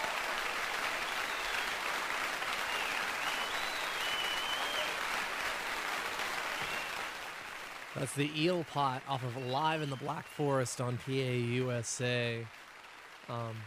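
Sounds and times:
audience applause at end of live recording: 0.0 - 13.6
speech: 8.0 - 12.6, 13.3 - 13.6.

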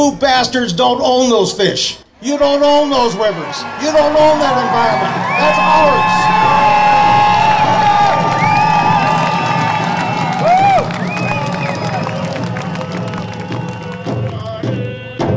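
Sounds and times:
speech: 0.0 - 6.7
crowd cheering at an outdoor rally: 2.2 - 15.2.

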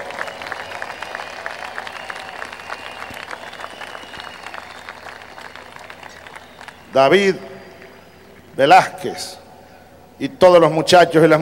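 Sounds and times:
audience applause and ovation: 0.0 - 8.5
speech: 6.9 - 7.5, 8.6 - 9.4, 10.2 - 11.4.

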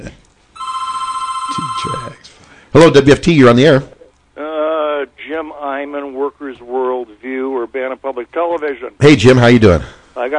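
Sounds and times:
speech: 0.0 - 0.2, 1.6 - 4.0, 5.3 - 10.3
telephone ringing with an incoming call to a radio call-in show: 0.6 - 2.2.

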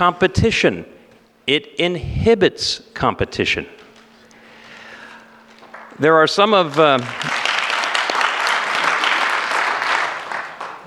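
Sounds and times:
speech: 0.0 - 3.8, 6.0 - 7.3
audience applause: 5.6 - 10.8.

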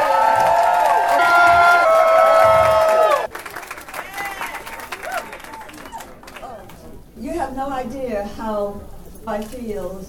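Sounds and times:
crowd applause and cheering: 0.0 - 6.9
speech: 8.5 - 10.0.

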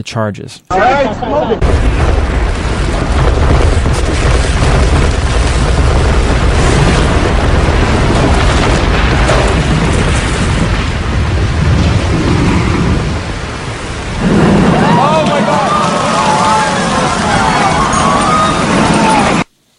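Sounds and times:
speech: 0.0 - 2.6
skyscraper collapsing with popping and crashing: 0.8 - 19.5
people shouting and screaming: 14.6 - 19.5.

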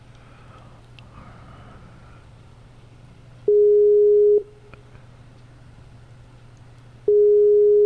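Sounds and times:
Skype call busy beep: 3.5 - 4.5, 7.1 - 7.8.

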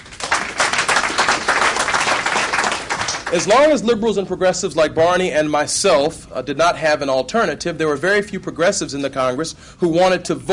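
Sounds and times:
audience clapping: 0.0 - 3.6
speech: 3.3 - 10.5.

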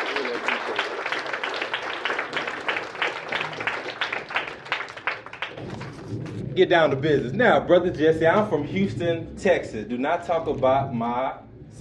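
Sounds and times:
audience applause: 0.0 - 6.4
speech: 6.6 - 11.7.

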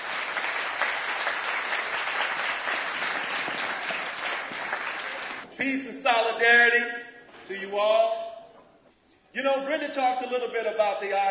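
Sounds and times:
audience at a union gathering applauding to welcome a speaker: 0.0 - 5.5
speech: 5.6 - 8.2, 9.4 - 11.2.

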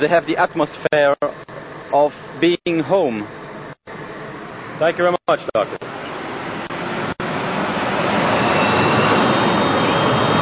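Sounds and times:
speech: 0.0 - 3.4, 4.8 - 5.9
Learjet air rescue jet taking off down a runway at Zurich Airport: 4.1 - 10.4.

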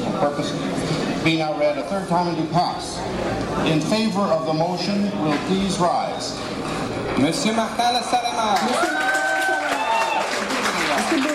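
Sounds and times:
speech: 0.2 - 9.1
crowd cheering and shouting: 8.3 - 11.3.

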